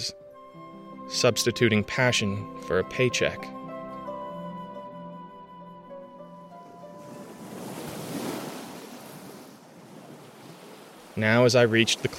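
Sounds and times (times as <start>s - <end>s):
speech: 1.1s - 3.6s, 11.2s - 12.1s
waves crashing over sand: 7.0s - 12.1s.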